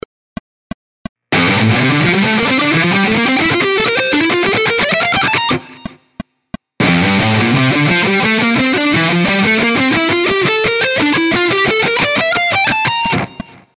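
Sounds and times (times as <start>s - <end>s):
ascending guitar shred: 1.3s - 5.9s, 6.8s - 13.4s.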